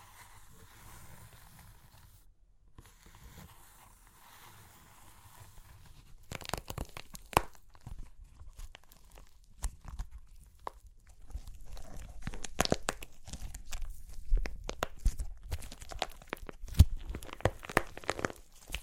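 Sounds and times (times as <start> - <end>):
crunchy clay cracking: 6.2 - 18.8.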